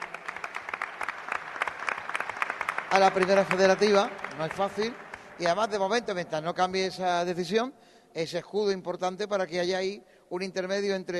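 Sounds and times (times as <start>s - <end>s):
audience applause at a ceremony for the Juventud de Torremolinos president: 0.0s - 5.8s
speech: 2.9s - 11.1s.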